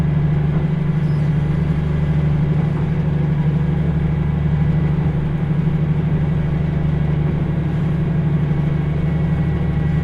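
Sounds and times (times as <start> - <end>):
Kyushu Odan limited express engine drone on the Hōhi Line: 0.0 - 10.0
train rattling rumble: 0.0 - 10.0.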